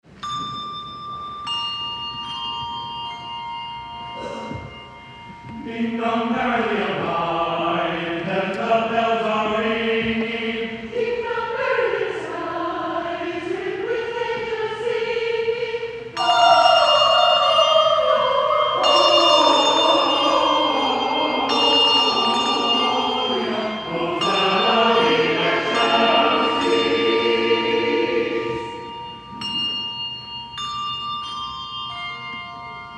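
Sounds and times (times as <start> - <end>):
choir singing: 5.5 - 29.6.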